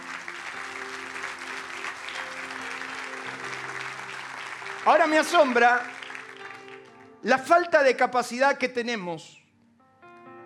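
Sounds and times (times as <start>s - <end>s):
audience applauding: 0.0s - 7.6s
speech: 4.8s - 6.0s, 7.2s - 9.4s.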